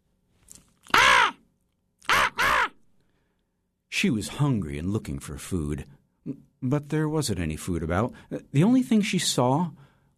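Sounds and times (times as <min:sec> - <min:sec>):
crow cawing: 0:00.9 - 0:01.4, 0:02.0 - 0:02.8
speech: 0:04.0 - 0:09.9.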